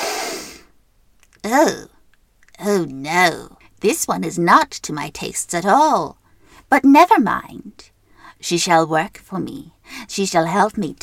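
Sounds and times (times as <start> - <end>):
long breathy sniff through the nose: 0.0 - 0.7
speech: 1.4 - 1.9, 2.6 - 11.0.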